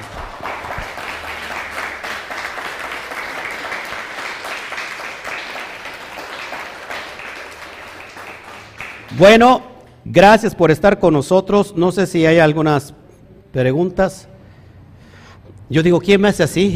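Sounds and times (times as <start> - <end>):
applause: 0.0 - 9.6
speech: 9.2 - 14.3, 15.7 - 16.7.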